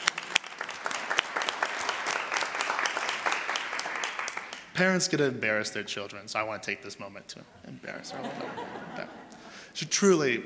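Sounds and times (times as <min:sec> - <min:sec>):
crowd clapping: 0:00.0 - 0:04.8
speech: 0:04.8 - 0:10.4
laughter: 0:07.8 - 0:09.6.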